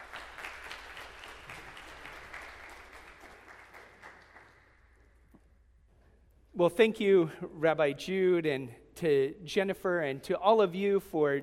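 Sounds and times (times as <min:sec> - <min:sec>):
audience applause welcoming a speaker: 0:00.0 - 0:04.8
speech: 0:06.6 - 0:11.4.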